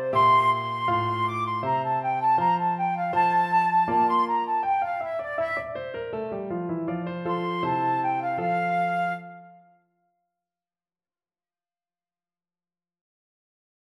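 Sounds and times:
flute playing a gavotte from a cello suite: 0.0 - 6.0, 7.3 - 9.8.

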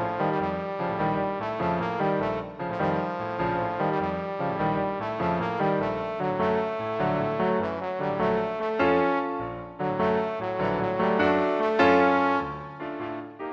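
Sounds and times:
trombone: 0.0 - 13.4.

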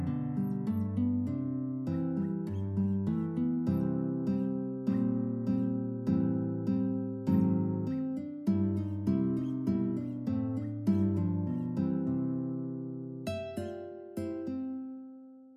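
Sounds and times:
Western blues guitar duet: 0.0 - 15.0.

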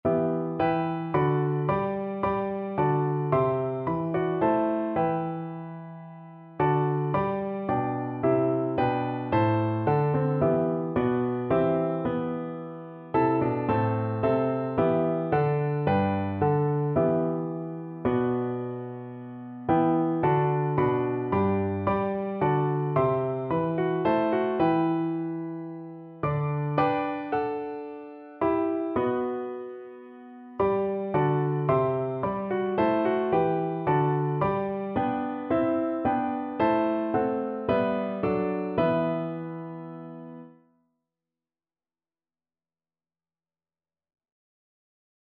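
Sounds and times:
piano duet: 0.0 - 40.7.

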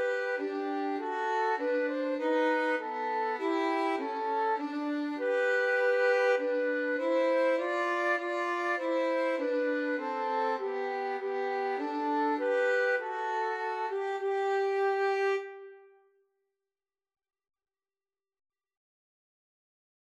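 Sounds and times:
violin and flute duet: 0.0 - 15.9.

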